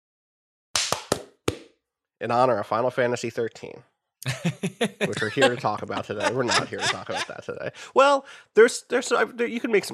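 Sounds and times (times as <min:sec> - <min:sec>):
single hand clap for sync: 0:00.8 - 0:01.7
speech: 0:02.2 - 0:09.9
laughter: 0:04.2 - 0:08.3.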